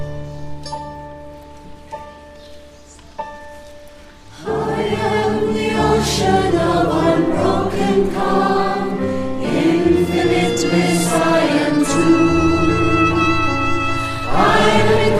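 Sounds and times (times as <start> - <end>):
chorus singing: 4.3 - 15.1.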